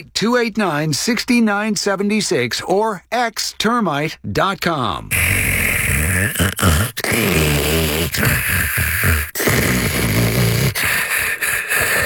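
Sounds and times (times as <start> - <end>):
speech: 0.0 - 5.5, 6.1 - 10.2
snoring: 5.1 - 12.0.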